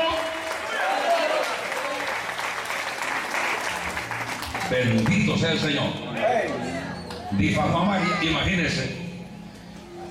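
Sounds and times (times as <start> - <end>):
audience applause: 0.0 - 5.2
speech: 4.7 - 6.6, 7.3 - 9.0.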